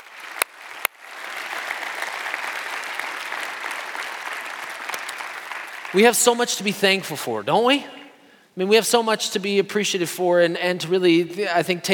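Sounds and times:
audience applause: 0:00.0 - 0:06.6
speech: 0:05.9 - 0:08.0, 0:08.6 - 0:11.9.

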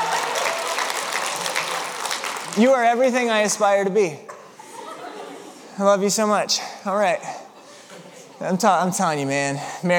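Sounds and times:
audience applause: 0:00.0 - 0:03.1
speech: 0:02.6 - 0:04.3, 0:05.8 - 0:07.4, 0:08.4 - 0:09.9
laughter: 0:04.3 - 0:05.8.

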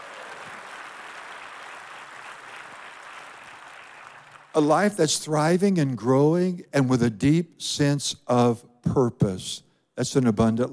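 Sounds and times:
audience clapping: 0:00.0 - 0:04.8
speech: 0:04.6 - 0:10.7.

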